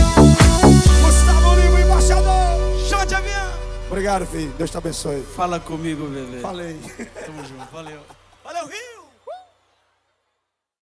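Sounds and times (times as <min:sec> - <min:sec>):
sertanejo music: 0:00.0 - 0:08.4
laughter: 0:06.5 - 0:09.4.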